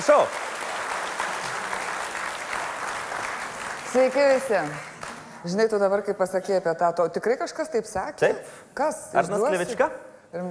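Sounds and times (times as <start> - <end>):
speech: 0.0 - 0.5, 3.9 - 10.5
talk show audience applause welcoming a guest: 0.0 - 5.3.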